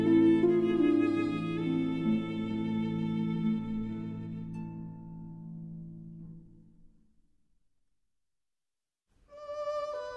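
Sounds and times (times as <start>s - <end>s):
berceuse for violin and harp: 0.0s - 5.5s, 9.3s - 10.1s.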